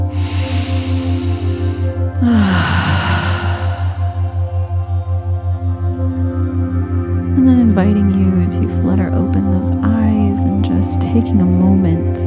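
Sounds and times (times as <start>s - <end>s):
deep breath during a guided meditation: 0.0s - 5.0s
steady low pulsing drone: 0.0s - 12.2s
speech: 11.1s - 12.2s.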